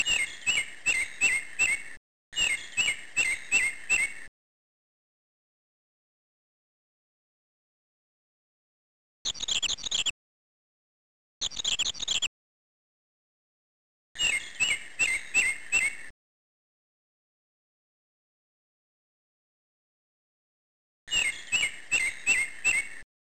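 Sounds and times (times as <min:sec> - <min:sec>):
birds: 0:00.0 - 0:04.3, 0:09.3 - 0:10.2, 0:11.4 - 0:12.3, 0:14.2 - 0:16.1, 0:21.1 - 0:23.0.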